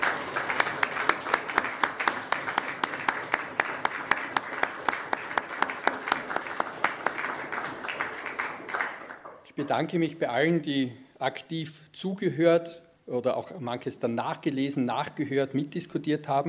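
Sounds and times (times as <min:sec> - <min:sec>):
audience applauding: 0:00.0 - 0:09.4
speech: 0:09.6 - 0:16.4.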